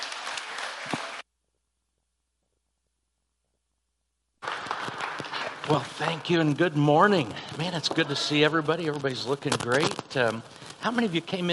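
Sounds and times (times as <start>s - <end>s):
audience clapping at a church gathering: 0.0s - 1.2s, 4.4s - 11.5s
speech: 5.7s - 11.5s.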